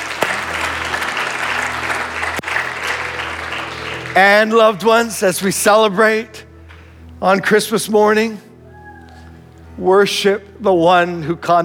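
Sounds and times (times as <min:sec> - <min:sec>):
audience applause: 0:00.0 - 0:04.7
speech: 0:04.2 - 0:06.5, 0:07.2 - 0:08.5, 0:09.8 - 0:11.6.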